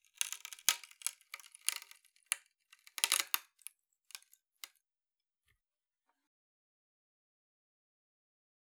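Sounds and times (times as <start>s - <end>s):
wooden pallet sounds: 0.0s - 4.2s.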